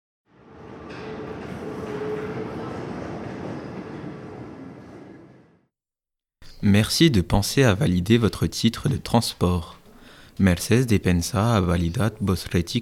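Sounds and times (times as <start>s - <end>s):
tram arriving at Lycée International de Colomiers station: 0.3s - 5.7s
speech: 6.6s - 9.8s, 10.4s - 12.8s.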